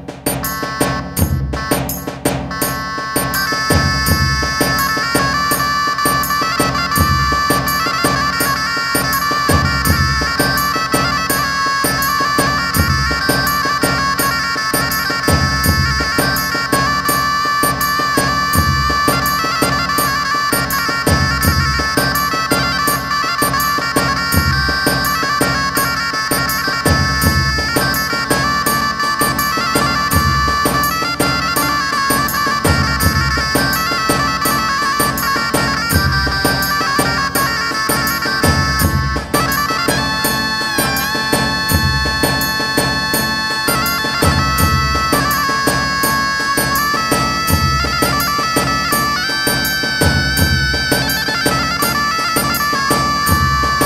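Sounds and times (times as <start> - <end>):
zurla playing with rhythm: 0.4 - 53.8.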